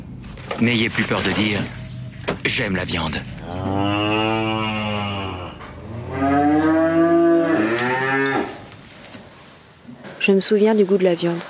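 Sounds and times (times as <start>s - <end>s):
speech: 0.6s - 1.8s, 2.4s - 4.2s, 10.3s - 11.4s
cow mooing: 2.7s - 8.6s.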